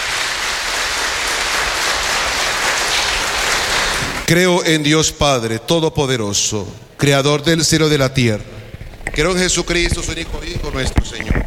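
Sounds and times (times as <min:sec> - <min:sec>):
audience applause: 0:00.0 - 0:04.3
speech: 0:04.3 - 0:11.4.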